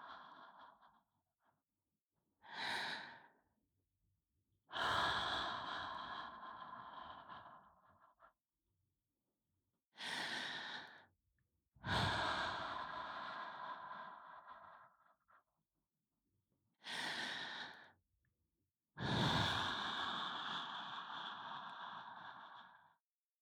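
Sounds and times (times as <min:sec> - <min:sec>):
binaural ASMR breathing in the right ear: 0:00.0 - 0:01.6, 0:02.4 - 0:03.5, 0:04.7 - 0:08.4, 0:10.0 - 0:11.2, 0:11.8 - 0:15.5, 0:16.8 - 0:18.0, 0:19.0 - 0:23.0.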